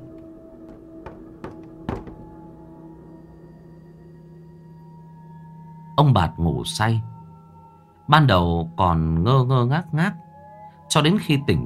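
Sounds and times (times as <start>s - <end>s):
knocking on a door: 0.0s - 2.6s
speech: 6.0s - 7.1s, 8.1s - 10.2s, 10.9s - 11.6s.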